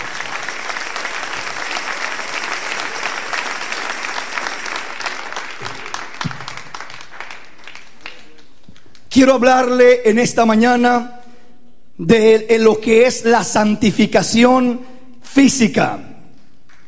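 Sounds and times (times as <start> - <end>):
audience applause: 0.0 - 9.1
speech: 9.2 - 11.2, 12.0 - 16.1.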